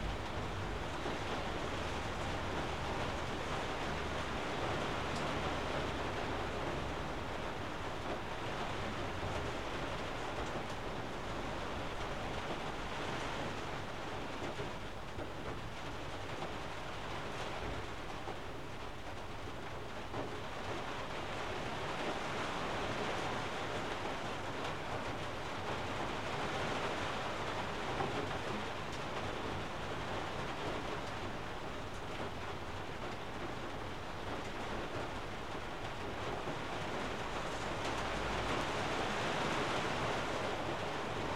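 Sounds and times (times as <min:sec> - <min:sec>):
rain in an attic: 0:00.0 - 0:41.3.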